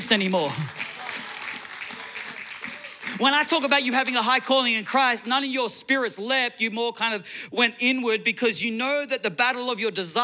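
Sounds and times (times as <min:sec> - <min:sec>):
one person clapping in a steady rhythm: 0:00.0 - 0:03.2
speech: 0:00.1 - 0:00.8, 0:03.2 - 0:10.2.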